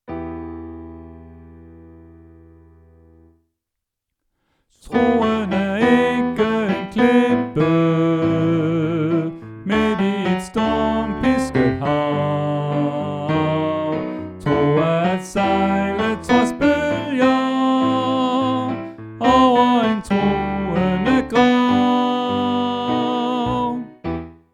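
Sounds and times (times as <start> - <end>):
tenor singing: 4.8 - 24.1.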